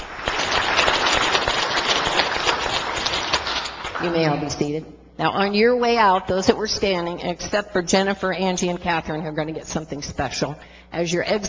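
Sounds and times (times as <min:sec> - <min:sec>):
crowd applauding: 0:00.0 - 0:04.5
speech: 0:04.0 - 0:11.4.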